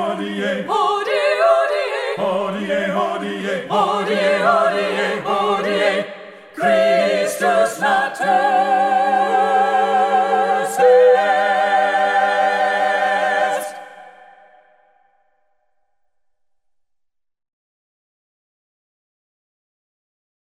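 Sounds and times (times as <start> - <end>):
a cappella Christmas fanfare singing: 0.0 - 14.7.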